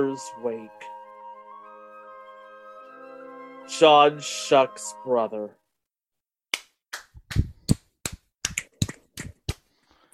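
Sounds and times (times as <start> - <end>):
speech: 0.0 - 0.9, 3.7 - 5.6
hand clapping: 6.5 - 9.7.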